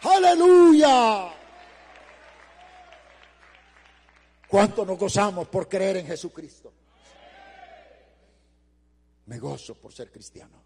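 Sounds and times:
church congregation clapping in praise: 0.0 - 5.4
low electrical hum: 0.0 - 10.6
speech: 0.1 - 1.3, 4.5 - 6.8, 9.3 - 10.6.

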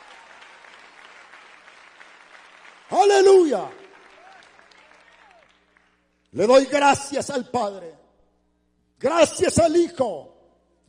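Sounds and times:
audience applause: 0.0 - 6.0
speech: 2.9 - 3.8, 6.4 - 8.0, 9.0 - 10.3.

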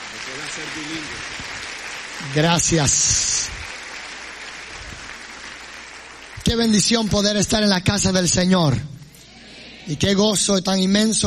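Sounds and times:
audience applause: 0.0 - 7.4
speech: 0.5 - 1.6, 2.2 - 3.6, 6.5 - 9.0, 9.9 - 11.2.

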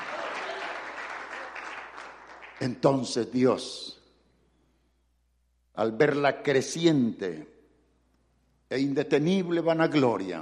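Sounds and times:
congregation clapping in praise at a church service: 0.0 - 3.2
speech: 2.6 - 4.0, 5.8 - 7.5, 8.7 - 10.4.

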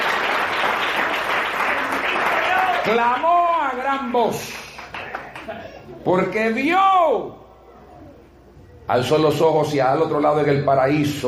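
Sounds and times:
applause from a large crowd: 0.0 - 3.8, 4.5 - 5.8
speech: 2.8 - 4.6, 5.5 - 7.4, 8.9 - 11.2.

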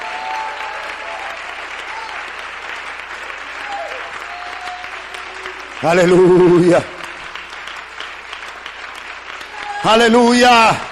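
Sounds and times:
brief tonal cries or shouts: 0.0 - 2.4, 3.5 - 6.8, 9.4 - 10.9
audience applauding in praise in a large room: 0.0 - 10.9
speech: 5.8 - 7.0, 9.8 - 10.9.

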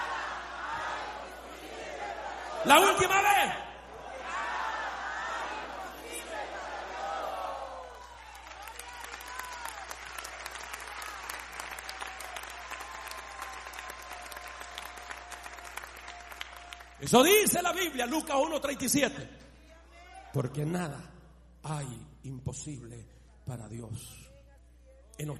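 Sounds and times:
audience shouting loudly in unison: 0.0 - 8.1
speech: 2.6 - 3.7, 17.1 - 19.4, 20.4 - 21.1, 21.7 - 24.3, 25.2 - 25.3
audience applause: 5.8 - 17.4
scattered cheers: 6.8 - 17.0.

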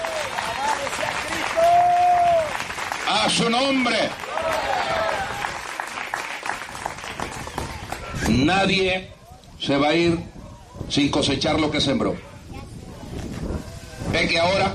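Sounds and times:
audience applauding: 0.0 - 8.2
speech: 3.2 - 4.7, 8.4 - 10.3, 10.9 - 12.3, 14.2 - 14.7.

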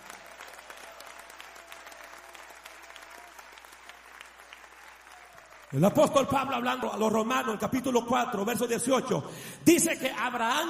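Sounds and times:
audience applause: 0.0 - 7.0
speech: 5.7 - 10.6.

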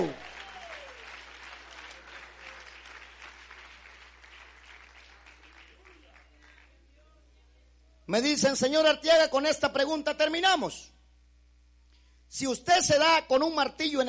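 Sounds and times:
audience applause: 0.0 - 6.7
speech: 8.1 - 11.0, 12.3 - 14.0.

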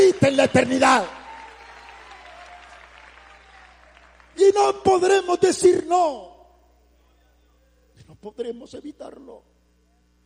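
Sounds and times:
church congregation applauding during a sermon: 0.0 - 5.2
speech: 0.2 - 1.2, 4.4 - 6.3, 8.1 - 9.5.

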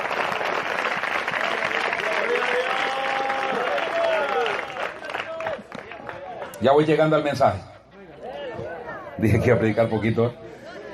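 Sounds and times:
audience applauding: 0.0 - 6.6
speech: 6.6 - 7.7, 9.2 - 10.4.

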